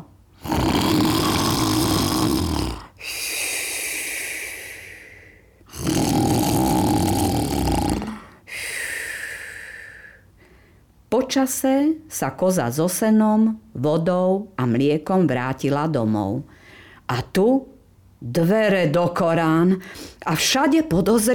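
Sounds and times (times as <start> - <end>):
wolf snoring while asleep: 0.4 - 2.9, 5.7 - 8.3
speech: 11.3 - 16.5, 17.1 - 21.3.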